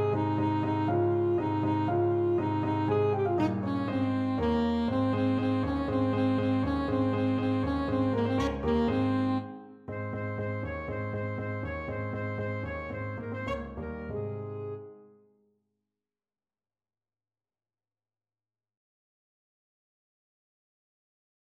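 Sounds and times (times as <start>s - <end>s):
saxophone playing: 0.0s - 15.1s.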